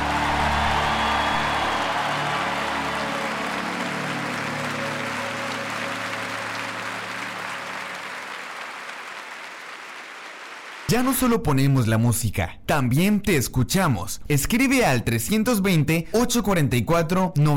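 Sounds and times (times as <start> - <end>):
applause: 0.0 - 11.3
speech: 10.9 - 17.5.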